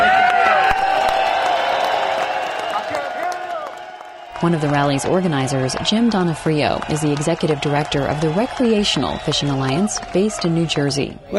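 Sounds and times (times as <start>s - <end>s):
whoops and shouted voices: 0.0s - 10.6s
large crowd clapping: 0.0s - 11.0s
speech: 4.4s - 11.3s.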